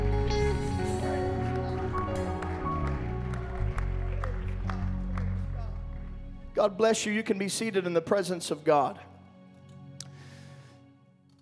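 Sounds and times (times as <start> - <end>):
audience clapping: 0.6 - 6.8
speech: 6.6 - 9.1.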